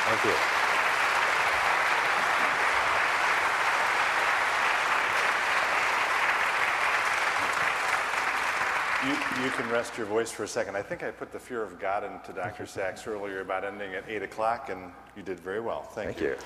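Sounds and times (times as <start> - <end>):
audience applause: 0.0 - 10.1
speech: 0.1 - 0.6, 9.0 - 16.4.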